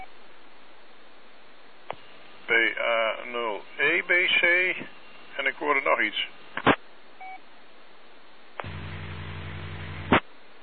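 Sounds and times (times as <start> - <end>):
radio carrier with 50 Hz hum: 1.9 - 6.8, 8.6 - 10.2
speech: 3.2 - 6.4.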